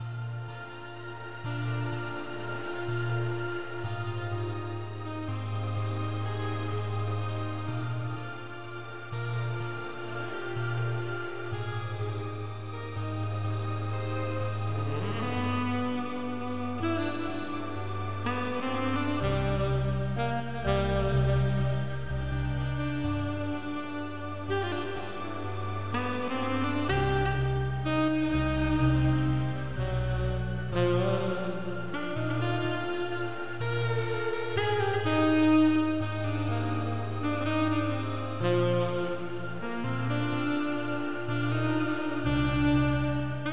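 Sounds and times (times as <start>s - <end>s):
saxophone solo: 0.0s - 43.5s.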